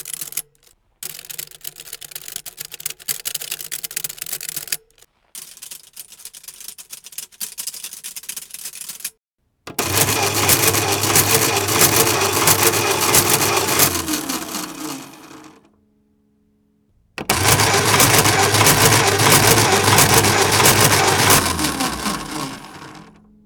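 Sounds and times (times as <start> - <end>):
check printer printing: 9.7 - 15.7, 17.2 - 23.2.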